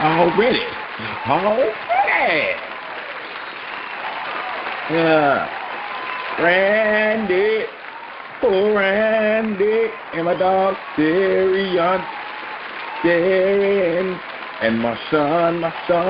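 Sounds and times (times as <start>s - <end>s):
studio audience applause: 0.0s - 16.0s
speech: 0.2s - 2.7s, 4.9s - 5.6s, 6.4s - 7.8s, 8.4s - 12.2s, 13.0s - 16.0s.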